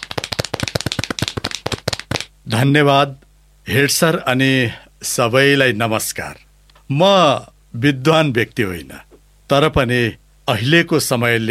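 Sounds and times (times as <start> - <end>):
applause from a gathering welcoming an elder speaker: 0.0 - 2.3
speech: 2.5 - 11.4.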